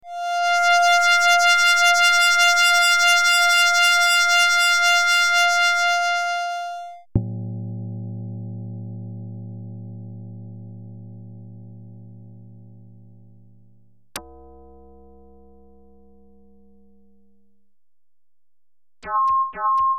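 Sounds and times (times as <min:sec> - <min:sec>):
synthetic sound: 0:00.1 - 0:07.0, 0:19.0 - 0:19.9.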